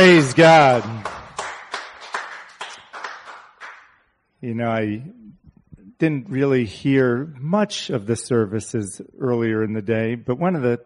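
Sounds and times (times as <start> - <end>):
speech: 0.0 - 1.1, 4.4 - 5.2, 6.0 - 10.8
audience cheering: 0.0 - 2.2.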